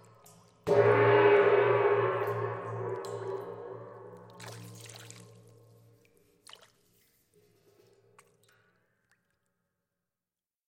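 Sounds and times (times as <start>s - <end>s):
gong in water: 0.6s - 6.2s.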